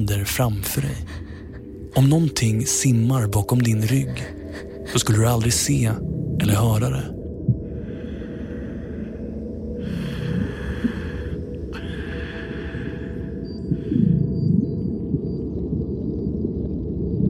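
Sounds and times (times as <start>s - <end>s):
speech: 0.0s - 1.2s, 2.0s - 7.2s
steady low rumble: 0.0s - 17.2s
diver breathing underwater in darkness: 7.6s - 14.7s.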